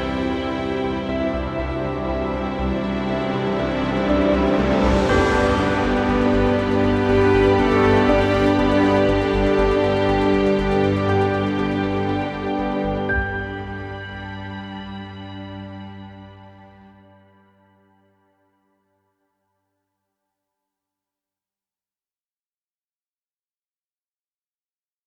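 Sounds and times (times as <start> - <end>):
fragrant ambient music: 0.0 - 18.4.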